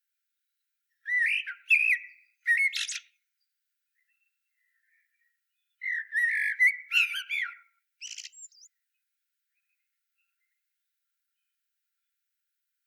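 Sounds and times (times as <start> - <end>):
common blackbird Turdus merula singing: 1.0 - 3.2, 4.0 - 8.8.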